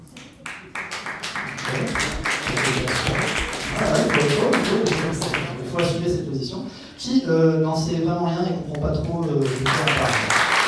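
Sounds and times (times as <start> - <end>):
scattered audience applause: 0.0 - 6.0, 9.3 - 10.6
speech: 6.1 - 10.3.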